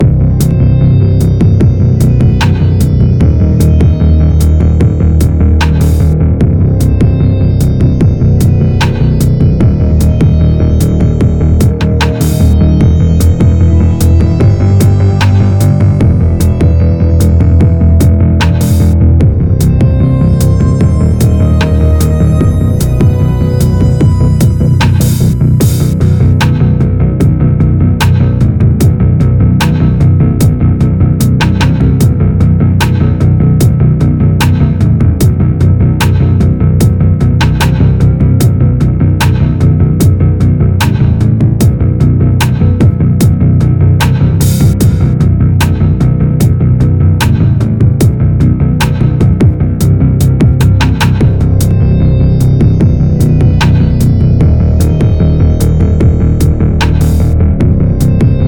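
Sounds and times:
tense music: 0:00.0 - 0:58.4.

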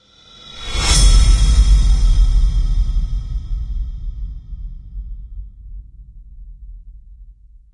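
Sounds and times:
swell: 0:00.0 - 0:05.7.

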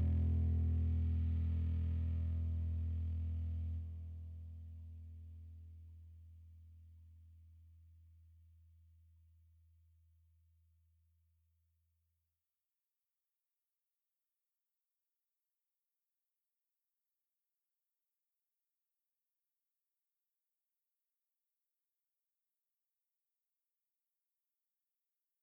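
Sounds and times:
electric bass background loop: 0:00.0 - 0:05.3.

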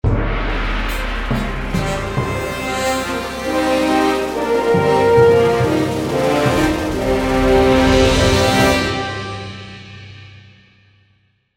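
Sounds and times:
large victory sound: 0:00.4 - 0:09.6.

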